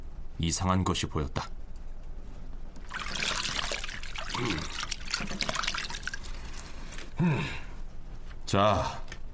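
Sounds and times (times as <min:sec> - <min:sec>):
speech: 0:00.4 - 0:01.6, 0:08.5 - 0:09.0
water splashing while hands wash face: 0:02.8 - 0:06.8.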